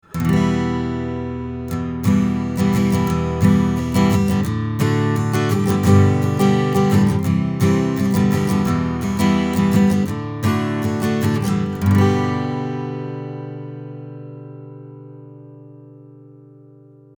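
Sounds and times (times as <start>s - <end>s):
guitar played at the 19th fret: 0.0s - 17.1s.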